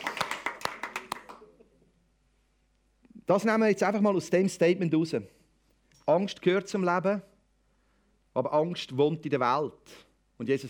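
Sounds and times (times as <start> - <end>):
audience clapping: 0.0 - 1.5
speech: 3.3 - 5.4, 6.1 - 7.3, 8.4 - 10.6.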